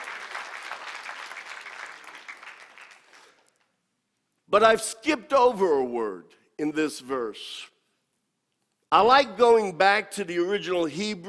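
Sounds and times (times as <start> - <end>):
audience applauding: 0.0 - 3.5
speech: 4.5 - 7.7, 8.9 - 11.2.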